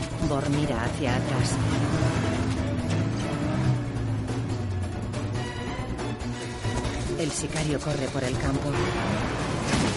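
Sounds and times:
SUV engine rumbling while driving off-road across a field: 0:00.0 - 0:07.2
speech: 0:00.2 - 0:02.6, 0:07.2 - 0:09.9.

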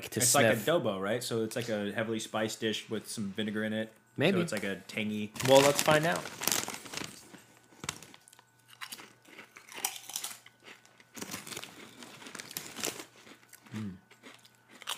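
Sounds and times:
speech: 0:00.0 - 0:06.6
crunching on snack chips: 0:05.4 - 0:14.9.

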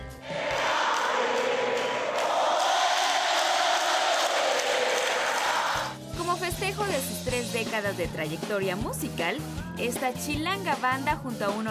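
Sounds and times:
large concert crowd applauding: 0:00.3 - 0:06.0
speech: 0:06.7 - 0:11.6.

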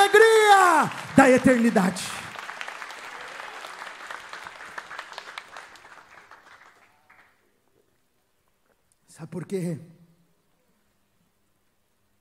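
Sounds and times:
audience applauding: 0:00.0 - 0:07.6
speech: 0:00.1 - 0:02.3, 0:09.2 - 0:10.0.

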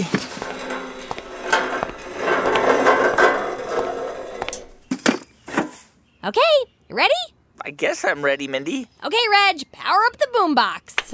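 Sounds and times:
lawn chair rattling metal clanks and clicks: 0:00.0 - 0:04.9
lawn chair scraping and rustling: 0:00.0 - 0:05.9
speech: 0:06.3 - 0:11.1.

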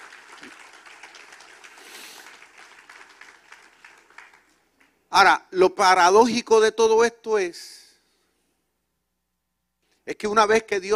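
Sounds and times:
audience applause: 0:00.0 - 0:05.0
speech: 0:05.1 - 0:07.8, 0:10.1 - 0:10.9.

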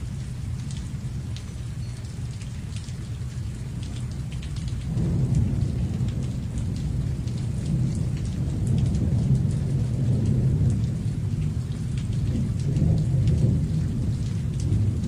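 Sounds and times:
steady rain: 0:00.0 - 0:15.0.

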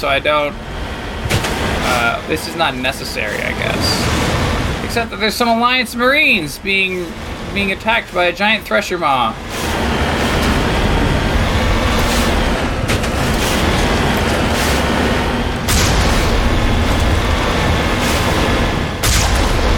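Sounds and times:
speech: 0:00.0 - 0:00.7, 0:01.9 - 0:04.2, 0:04.9 - 0:09.7
tank rumbling drone in Mass Effect video game: 0:00.0 - 0:19.7
tank cannon firing in Mass Effect video game: 0:01.1 - 0:02.2, 0:09.4 - 0:19.7.

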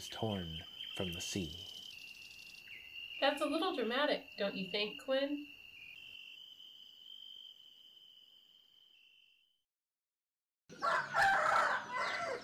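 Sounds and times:
speech: 0:00.0 - 0:01.7, 0:03.2 - 0:05.6
high-pitched insect trill: 0:00.0 - 0:09.6, 0:10.8 - 0:12.4
rooster crowing: 0:10.7 - 0:12.4.

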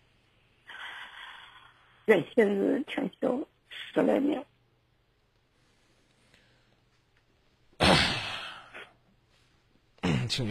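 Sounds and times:
speech: 0:02.1 - 0:04.5
throat clearing into microphone: 0:07.8 - 0:09.0, 0:10.0 - 0:10.4.

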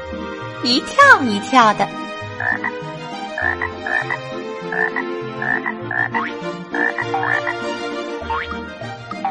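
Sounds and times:
speech: 0:00.6 - 0:08.8
toad croaking: 0:02.4 - 0:07.6.

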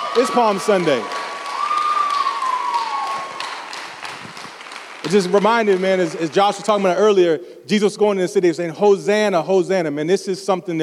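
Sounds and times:
audience clapping hands: 0:00.0 - 0:07.1
speech: 0:00.2 - 0:01.2, 0:05.1 - 0:10.8.

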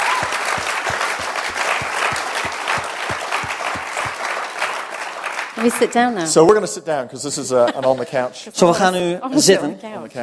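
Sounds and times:
audience applause: 0:00.0 - 0:06.1
speech: 0:05.6 - 0:10.2.

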